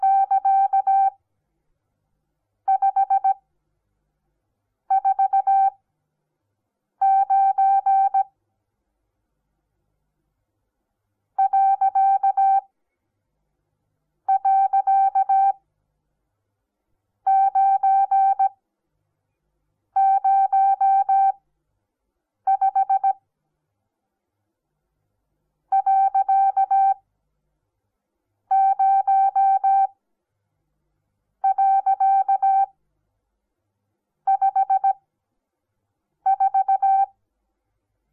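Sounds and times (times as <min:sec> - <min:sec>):
morse code beeps: 0:00.0 - 0:01.2, 0:02.7 - 0:03.4, 0:04.9 - 0:05.8, 0:07.0 - 0:08.3, 0:11.4 - 0:12.6, 0:14.3 - 0:15.6, 0:17.3 - 0:18.5, 0:20.0 - 0:21.4, 0:22.5 - 0:23.2, 0:25.8 - 0:27.0, 0:28.5 - 0:29.9, 0:31.4 - 0:32.7, 0:34.3 - 0:35.0, 0:36.3 - 0:37.1.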